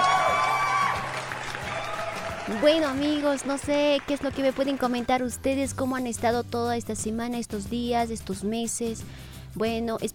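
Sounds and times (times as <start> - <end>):
crowd cheering and whooping: 0.0 - 3.2
crowd applauding: 0.0 - 5.3
speech: 2.5 - 10.1.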